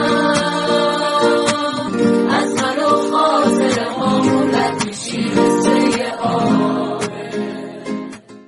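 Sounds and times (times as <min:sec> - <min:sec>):
Iranian guitar music: 0:00.0 - 0:08.4.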